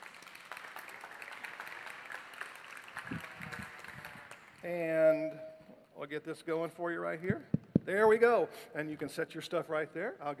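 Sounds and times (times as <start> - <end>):
church congregation applauding to welcome a speaker: 0.0 - 4.7
speech: 4.6 - 5.4, 6.0 - 10.3.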